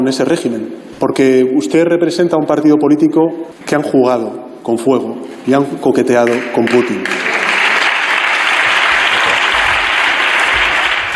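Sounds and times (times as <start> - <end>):
speech: 0.0 - 7.4
applause: 6.2 - 11.1.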